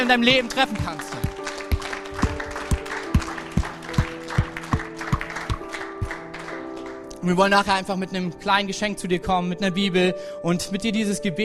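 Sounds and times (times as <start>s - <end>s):
audience applause: 0.0s - 7.1s
speech: 0.1s - 1.2s, 7.2s - 11.4s.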